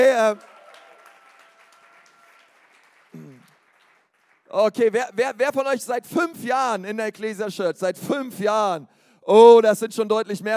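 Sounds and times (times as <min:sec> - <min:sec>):
speech: 0:00.0 - 0:00.5, 0:04.5 - 0:10.5
applause: 0:00.0 - 0:05.1.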